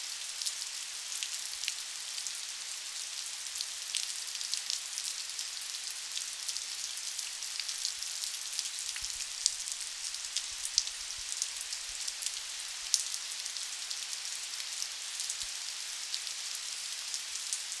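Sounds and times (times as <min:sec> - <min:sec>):
close rain: 0:00.0 - 0:17.7.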